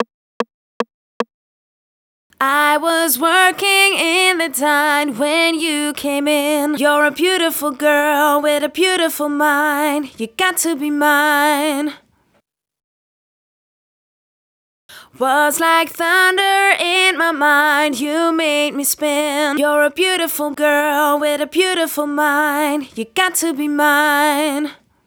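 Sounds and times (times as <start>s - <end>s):
girl singing a verse: 2.4s - 12.0s, 14.9s - 24.9s.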